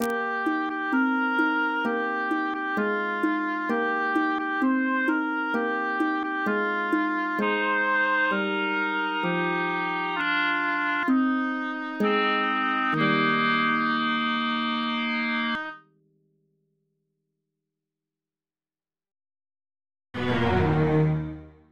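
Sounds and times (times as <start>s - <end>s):
waltz music: 0.0s - 15.7s, 20.2s - 21.6s.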